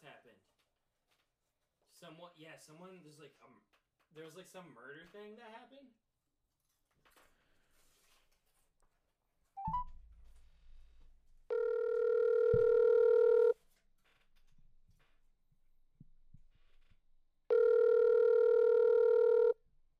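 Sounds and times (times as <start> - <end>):
speech: 2.0 - 6.0
phone call ringing unanswered: 11.5 - 13.6, 17.5 - 19.6.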